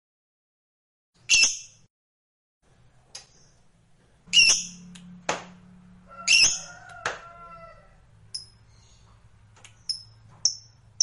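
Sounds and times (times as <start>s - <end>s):
lovebird squawking: 4.3s - 4.8s, 6.1s - 6.8s.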